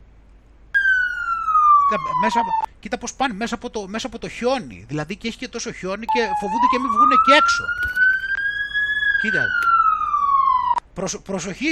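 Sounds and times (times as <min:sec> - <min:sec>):
police car siren passing through snowy residential streets: 0:00.8 - 0:02.7, 0:06.1 - 0:10.8
speech: 0:01.9 - 0:08.0, 0:09.2 - 0:09.7, 0:11.0 - 0:11.7.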